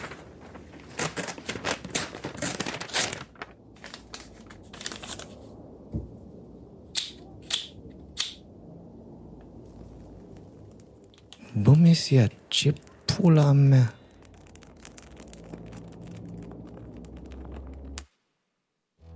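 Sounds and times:
paper sheet being crumpled: 0.0s - 5.5s, 13.8s - 18.0s
paper tearing: 0.8s - 5.3s
speech: 11.9s - 14.0s.

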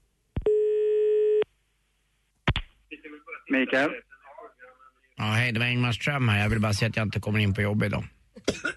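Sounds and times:
telephone dial tone: 0.5s - 1.5s
speech: 3.5s - 4.1s, 5.2s - 8.7s.

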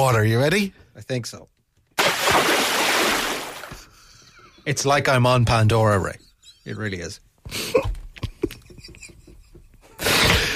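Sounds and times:
speech: 0.0s - 1.6s, 4.7s - 7.9s
rushing splashing water special effect: 2.0s - 3.7s.

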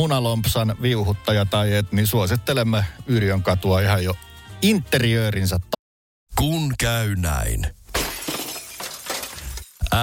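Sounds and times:
speech: 0.0s - 5.8s, 6.4s - 7.8s
windshield glass shattering: 7.9s - 10.0s.

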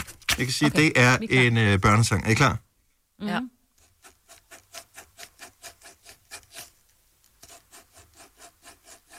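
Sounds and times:
speech: 0.4s - 3.6s
pencil scratching rhythmically on paper held close to the mic: 3.8s - 6.8s, 7.4s - 9.1s.

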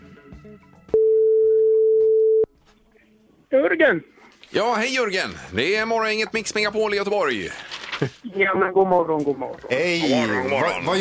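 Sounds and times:
speech: 0.4s - 0.8s, 3.5s - 10.9s
telephone ringing tone while calling: 1.0s - 2.5s.

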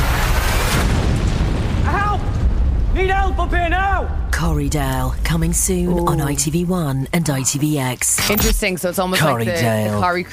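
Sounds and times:
car crash explosion: 0.0s - 7.6s
speech: 3.4s - 10.3s.

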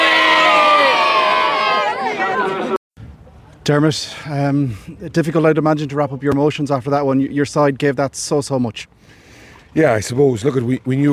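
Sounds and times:
crowd of supporters roaring and cheering: 0.0s - 2.8s
speech: 3.7s - 11.1s.

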